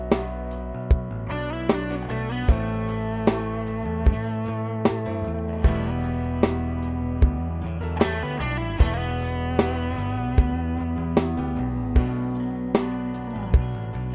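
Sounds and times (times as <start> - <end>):
roots rock basic drum beat: 0.0 - 14.1.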